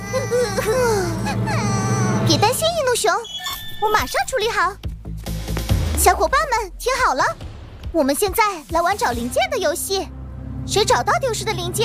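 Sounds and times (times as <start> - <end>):
person crying: 0.0 - 2.1
speech: 2.3 - 4.9, 6.0 - 11.8.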